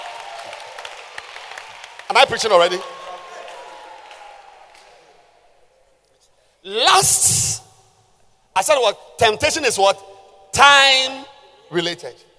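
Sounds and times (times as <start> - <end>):
audience clapping hands: 0.0 - 5.0
speech: 2.1 - 3.0, 6.6 - 7.6, 8.6 - 12.3.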